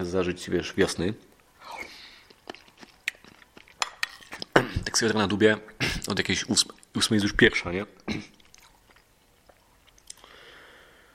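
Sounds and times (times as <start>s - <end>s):
speech: 0.0s - 1.9s, 5.0s - 8.4s
person eating soup mouth sounds: 1.6s - 4.9s, 8.0s - 10.3s
spoon clinking on a bowl: 3.8s - 4.4s.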